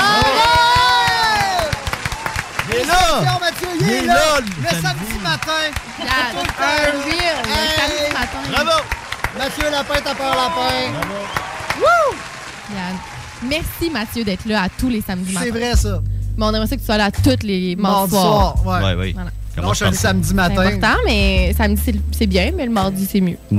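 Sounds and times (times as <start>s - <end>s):
crowd audience applause: 0.0s - 15.7s
laughter: 2.6s - 11.3s, 18.1s - 21.2s
speech: 4.0s - 23.5s.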